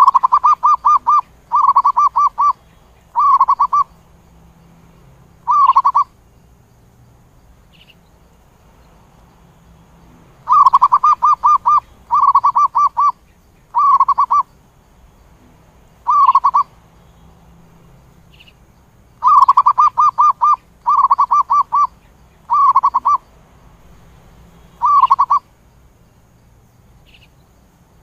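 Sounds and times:
zebra dove cooing: 0:00.0 - 0:03.9, 0:05.4 - 0:06.2, 0:10.4 - 0:14.5, 0:16.0 - 0:16.7, 0:19.2 - 0:23.2, 0:24.8 - 0:25.5.

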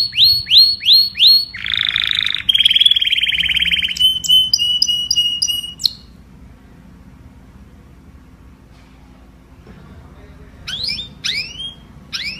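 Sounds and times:
domestic canary singing: 0:00.0 - 0:06.3, 0:10.6 - 0:12.3.

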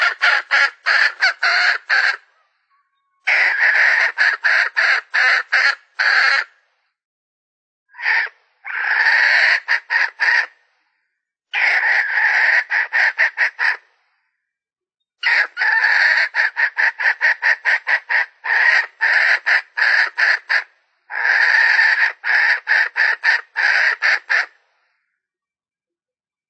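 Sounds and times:
Red junglefowl hen cackling: 0:00.0 - 0:06.6, 0:07.9 - 0:10.6, 0:11.5 - 0:13.9, 0:15.2 - 0:24.6.

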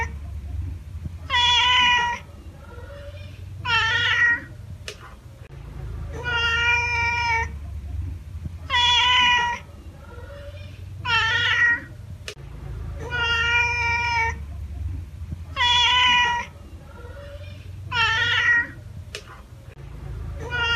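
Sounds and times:
domestic cat giving drawn-out meows: 0:01.2 - 0:04.6, 0:06.1 - 0:07.6, 0:08.6 - 0:12.0, 0:13.0 - 0:14.4, 0:15.5 - 0:18.8, 0:20.4 - 0:20.7.

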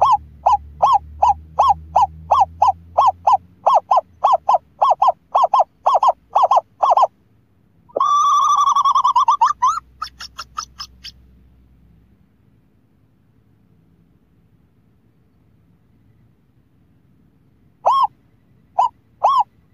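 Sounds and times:
scops owl hooting: 0:00.0 - 0:07.2, 0:07.9 - 0:11.2, 0:17.8 - 0:19.7.

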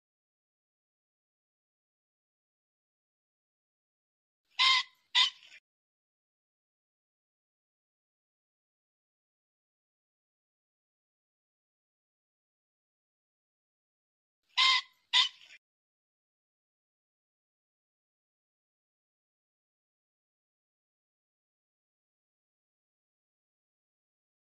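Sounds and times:
pheasant squawking: 0:04.6 - 0:05.6, 0:14.6 - 0:15.6.

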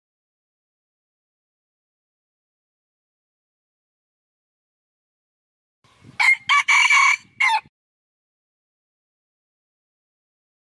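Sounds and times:
Red junglefowl crow: 0:06.2 - 0:07.7.

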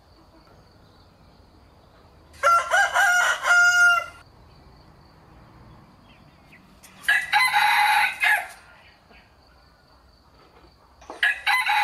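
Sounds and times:
rooster crowing: 0:02.4 - 0:04.3, 0:07.0 - 0:08.9, 0:11.2 - 0:11.8.

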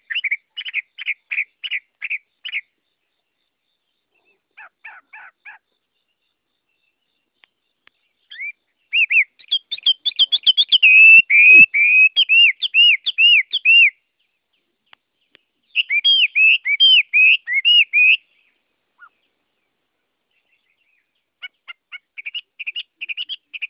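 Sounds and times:
Chinese hwamei whistling song: 0:00.0 - 0:02.8, 0:06.8 - 0:14.3, 0:15.2 - 0:19.3, 0:20.3 - 0:23.6.

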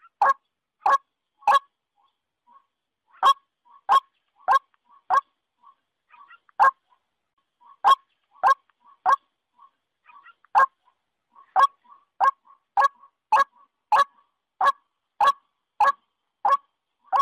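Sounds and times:
waterhen-type calls: 0:00.0 - 0:01.7, 0:02.5 - 0:07.0, 0:07.6 - 0:17.2.

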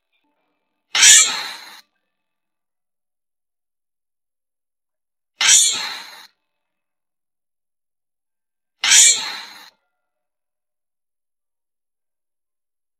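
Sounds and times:
giant flying squirrel shrieking: 0:01.0 - 0:01.8, 0:05.4 - 0:06.3, 0:08.8 - 0:09.8.

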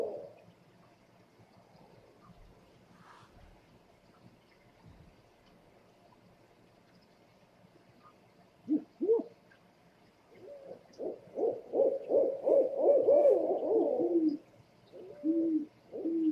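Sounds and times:
owl hooting: 0:00.0 - 0:00.4, 0:08.7 - 0:09.3, 0:10.4 - 0:16.2.

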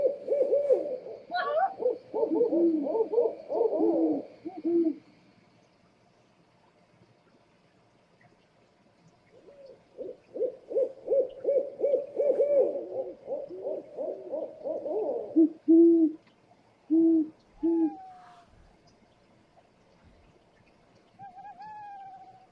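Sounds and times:
scops owl hooting: 0:00.0 - 0:05.0, 0:09.4 - 0:16.2, 0:16.9 - 0:18.5, 0:21.2 - 0:22.5.

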